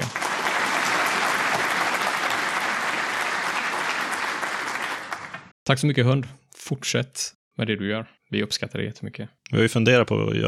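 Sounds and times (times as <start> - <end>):
applause: 0.0 - 5.5
speech: 5.7 - 10.4.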